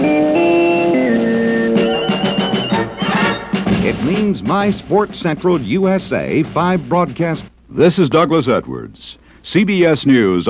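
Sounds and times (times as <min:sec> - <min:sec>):
radio sports signature electronic jingle: 0:00.3 - 0:04.3
rhythmic percussive pulses under bright tones: 0:01.6 - 0:07.4
speech: 0:04.3 - 0:10.4.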